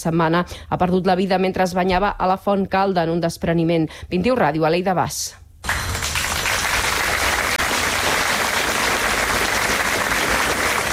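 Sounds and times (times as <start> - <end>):
speech: 0.0 - 5.4
applause in front of Gandesa town hall: 5.6 - 10.9.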